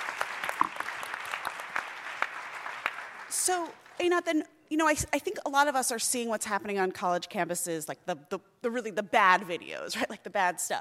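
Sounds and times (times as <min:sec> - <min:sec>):
audience applause: 0:00.0 - 0:03.4
speech: 0:03.4 - 0:10.8.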